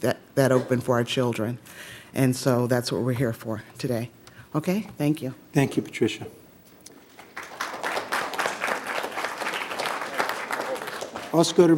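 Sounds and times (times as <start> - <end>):
speech: 0.0 - 6.4, 11.3 - 11.7
audience applause: 7.2 - 11.7.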